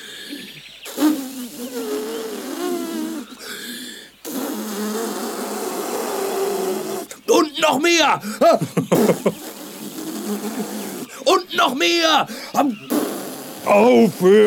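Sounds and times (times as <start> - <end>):
blowing up a balloon: 0.9 - 3.2, 4.3 - 7.1, 8.9 - 11.1, 12.9 - 13.9
speech: 7.4 - 9.4, 10.4 - 13.0, 13.6 - 14.4
laughter: 7.4 - 9.6.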